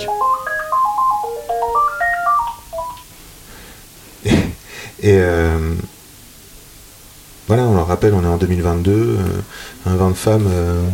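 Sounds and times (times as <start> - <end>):
telephone ringing: 0.0 - 3.1
speech: 5.0 - 5.9, 7.5 - 10.9.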